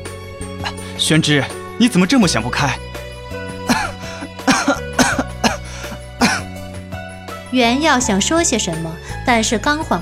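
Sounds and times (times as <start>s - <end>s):
coughing: 0.6s - 1.0s, 3.5s - 6.7s
speech: 1.0s - 2.8s, 7.5s - 10.0s.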